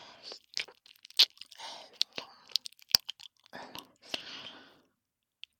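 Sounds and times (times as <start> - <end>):
binaural ear licking: 0.2 - 4.5.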